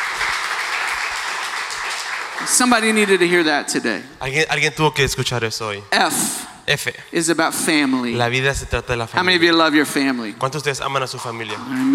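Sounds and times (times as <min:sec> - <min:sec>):
audience hand clap of praise: 0:00.0 - 0:03.7
speech: 0:02.4 - 0:11.9.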